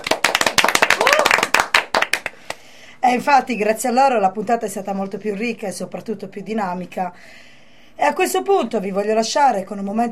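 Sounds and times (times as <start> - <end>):
audience applause: 0.0 - 2.4
speech: 3.1 - 10.0.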